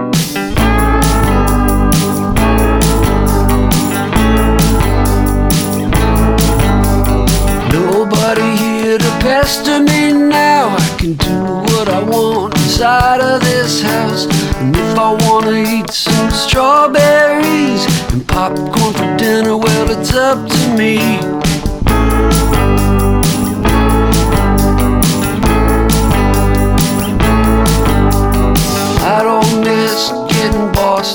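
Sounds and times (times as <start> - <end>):
band's song playing: 0.1 - 31.1.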